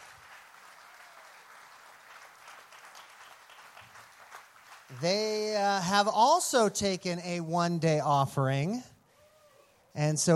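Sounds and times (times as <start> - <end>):
audience applause: 0.0 - 5.6
speech: 4.9 - 8.9, 10.0 - 10.3.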